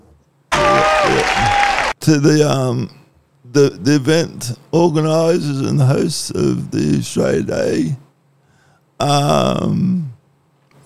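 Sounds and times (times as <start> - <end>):
applause: 0.5 - 2.0
speech: 2.1 - 8.0, 9.0 - 10.1.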